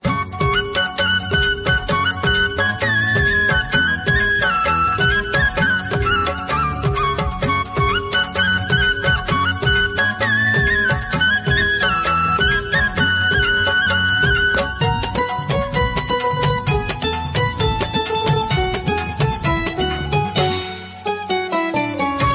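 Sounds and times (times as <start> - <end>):
music ringtone: 0.0 - 22.3.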